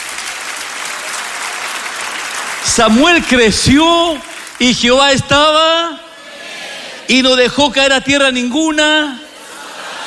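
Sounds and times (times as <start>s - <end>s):
applause: 0.0s - 5.0s
speech: 2.7s - 6.0s, 7.1s - 9.2s
laughter: 9.3s - 10.0s.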